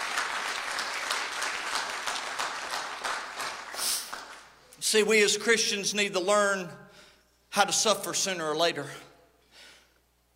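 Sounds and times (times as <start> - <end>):
audience hand clap of praise: 0.0 - 4.6
speech: 4.9 - 6.8, 7.6 - 9.1.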